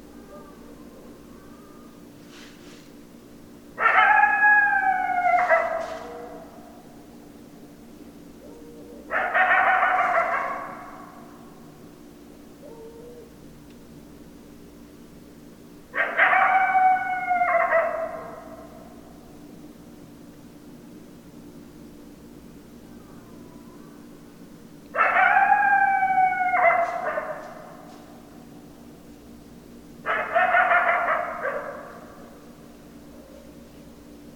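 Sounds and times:
coyote howling: 0.0s - 2.0s, 3.8s - 6.8s, 8.4s - 11.6s, 12.6s - 13.4s, 15.9s - 19.0s, 24.9s - 27.9s, 30.0s - 32.4s.

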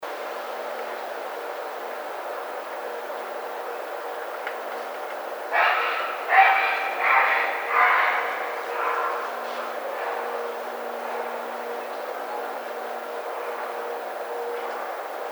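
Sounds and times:
Great Blue Heron calling: 3.0s - 15.3s.

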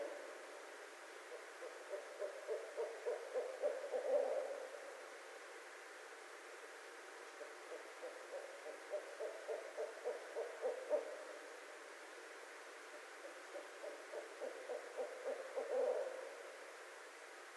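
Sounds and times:
barred owl excited hoots, cackles and wailing notes: 1.2s - 5.1s, 7.3s - 11.6s, 12.9s - 16.7s.

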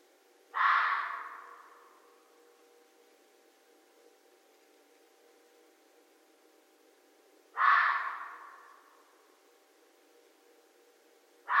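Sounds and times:
red fox cry: 0.5s - 2.0s, 7.5s - 9.1s.

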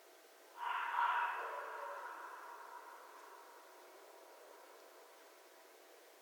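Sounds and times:
red fox screams: 0.6s - 3.5s.

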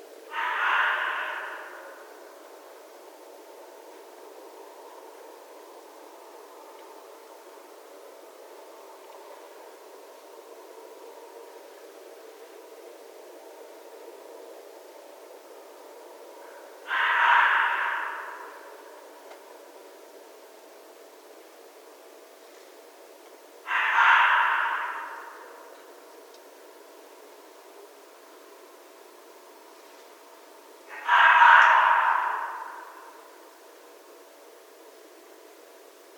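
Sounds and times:
red fox calling: 0.3s - 2.3s, 16.4s - 19.1s, 23.6s - 25.8s, 30.8s - 33.4s.

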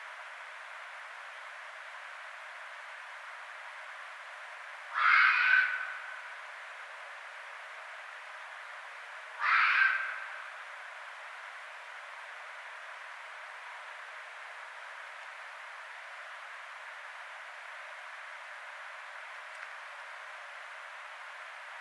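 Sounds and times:
red fox calling: 4.9s - 6.1s, 9.4s - 10.4s.

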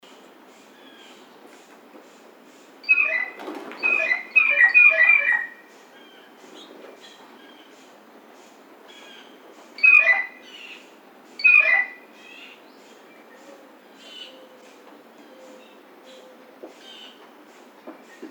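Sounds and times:
blue jay harsh squealing call: 2.8s - 6.3s, 8.9s - 12.6s.

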